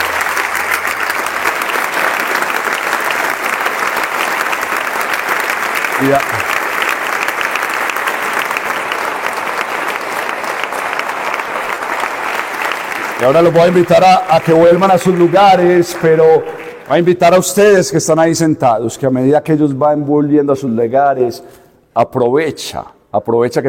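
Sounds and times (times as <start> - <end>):
audience applause: 0.0 - 17.8
speech: 6.0 - 6.5, 13.2 - 23.6.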